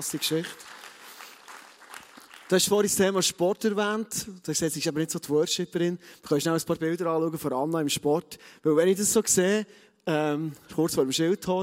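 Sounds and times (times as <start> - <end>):
speech: 0.0 - 0.8, 2.5 - 11.6
applause: 0.0 - 3.2.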